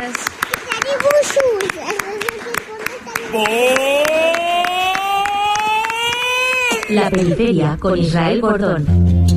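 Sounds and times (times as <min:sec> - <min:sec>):
speech: 0:00.0 - 0:02.5, 0:03.3 - 0:03.9, 0:06.9 - 0:09.2
audience applause: 0:00.0 - 0:07.4.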